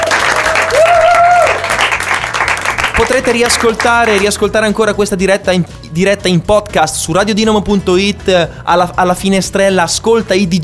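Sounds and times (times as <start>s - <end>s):
audience applause: 0.0s - 4.4s
speech: 3.0s - 10.6s.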